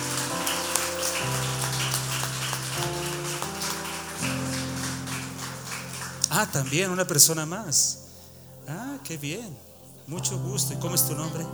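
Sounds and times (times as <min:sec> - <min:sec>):
audience applause: 0:00.0 - 0:07.3
speech: 0:06.4 - 0:08.0, 0:08.7 - 0:11.5.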